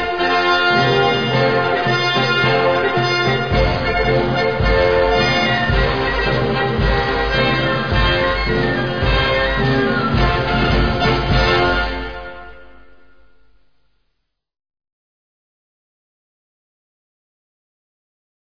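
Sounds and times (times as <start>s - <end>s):
march music: 0.0s - 13.7s.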